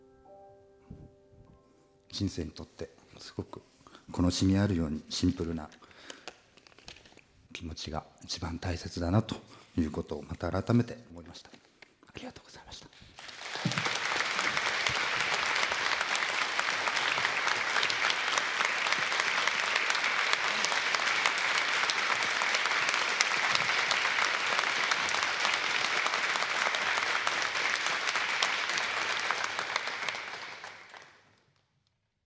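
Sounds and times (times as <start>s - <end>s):
speech: 2.2s - 6.1s, 7.6s - 11.6s, 12.2s - 12.9s
long sustained audience applause: 13.2s - 31.4s.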